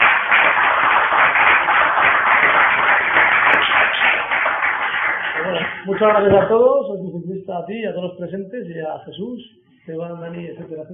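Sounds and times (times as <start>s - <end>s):
audience applause: 0.0s - 6.3s
speech: 5.9s - 10.9s.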